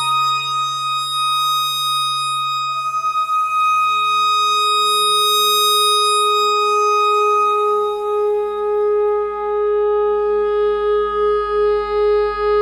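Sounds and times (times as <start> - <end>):
clarinet notes: 0.0 - 12.6.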